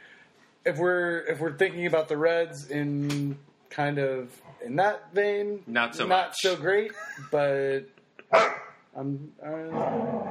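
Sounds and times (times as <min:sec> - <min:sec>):
speech: 0:00.6 - 0:10.3
laughter: 0:06.8 - 0:08.3
dog barking in a studio: 0:08.3 - 0:08.8.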